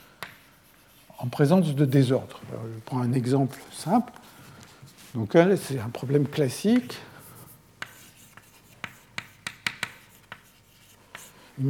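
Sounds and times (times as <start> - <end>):
drawing strokes and taps on a board during a physics lecture: 0.2 - 1.3, 7.3 - 11.6
speech: 1.2 - 4.3, 5.1 - 7.1.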